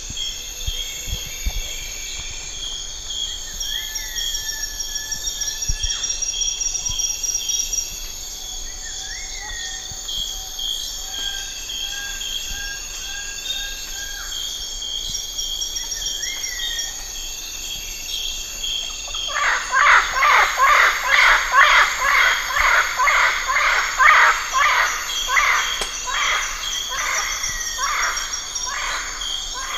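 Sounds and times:
steady high insect drone: 0:00.0 - 0:29.7
bird harsh calls: 0:19.2 - 0:29.7.

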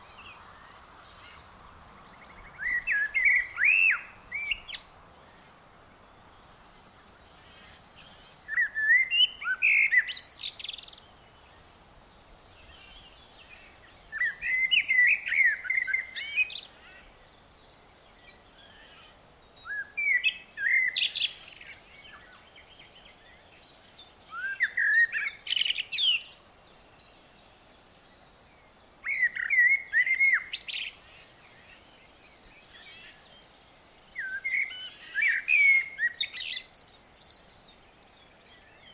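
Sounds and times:
Eurasian blackbird singing: 0:00.0 - 0:04.9, 0:06.4 - 0:11.5, 0:12.5 - 0:38.9.

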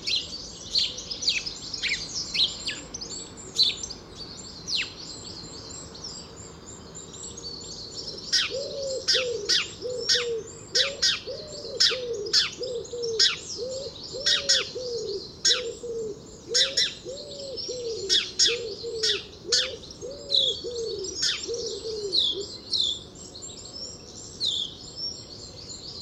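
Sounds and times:
house sparrow chirps: 0:00.0 - 0:25.9
low cooing notes: 0:08.4 - 0:22.5.

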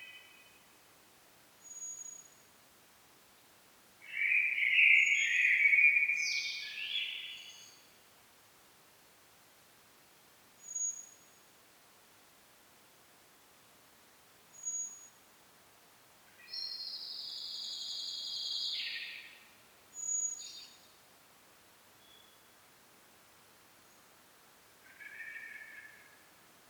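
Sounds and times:
common blackbird singing: 0:04.1 - 0:07.8, 0:16.5 - 0:19.3.

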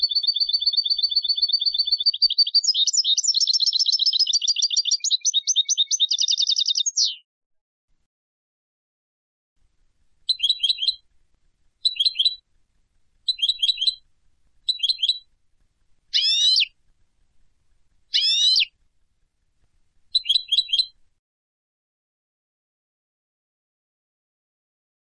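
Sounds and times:
European goldfinch calling: 0:00.0 - 0:07.2, 0:10.3 - 0:11.0, 0:11.8 - 0:12.4, 0:13.3 - 0:14.0, 0:14.7 - 0:15.3, 0:16.2 - 0:16.7, 0:18.1 - 0:18.7, 0:20.2 - 0:20.9.

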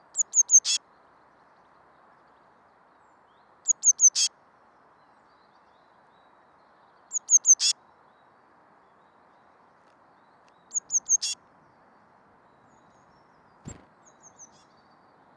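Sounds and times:
Eurasian blue tit high calls: 0:00.2 - 0:00.8, 0:03.6 - 0:04.3, 0:07.1 - 0:07.7, 0:10.4 - 0:11.4, 0:12.5 - 0:15.3
low knock: 0:13.7 - 0:13.9.

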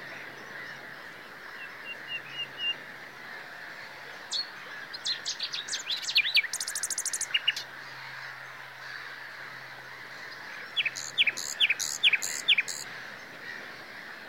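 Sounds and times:
common nightingale singing: 0:05.1 - 0:07.6, 0:10.8 - 0:12.9.

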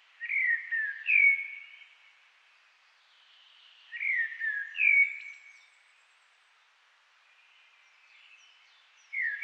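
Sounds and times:
Eurasian blackbird song: 0:00.2 - 0:01.8, 0:03.9 - 0:05.7, 0:08.1 - 0:09.4.

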